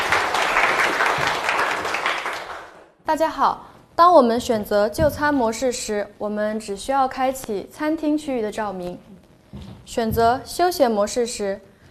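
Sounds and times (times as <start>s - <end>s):
audience applause: 0.0s - 2.9s
speech: 3.1s - 11.7s.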